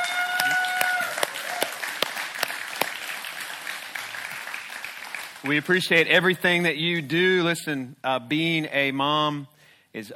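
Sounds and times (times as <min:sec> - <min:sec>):
crowd applauding: 0:00.0 - 0:05.9
speech: 0:05.4 - 0:10.1.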